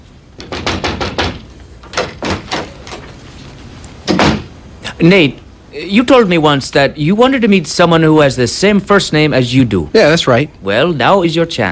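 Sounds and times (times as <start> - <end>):
speech: 0.4 - 0.8, 5.0 - 11.6
knocking on a door: 0.4 - 2.7, 4.1 - 4.5.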